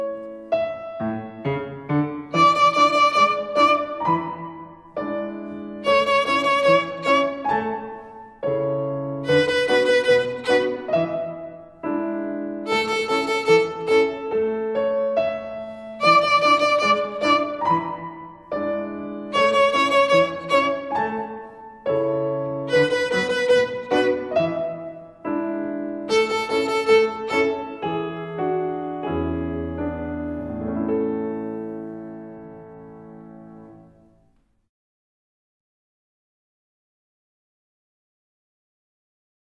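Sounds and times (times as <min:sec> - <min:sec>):
bowed violin rhythm with three fingers: 0:00.2 - 0:31.8.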